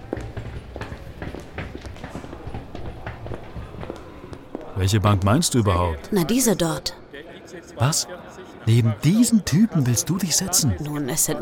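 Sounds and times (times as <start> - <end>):
footsteps of people walking with a suitcase to a bench: 0.0 - 5.0
speech: 4.8 - 11.4.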